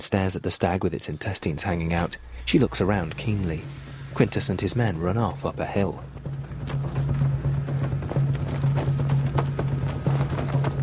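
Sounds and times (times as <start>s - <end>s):
speech: 0.0s - 7.1s
low droning tone: 1.3s - 10.8s
hooves of horses ridden by a group of Picts: 2.0s - 10.8s.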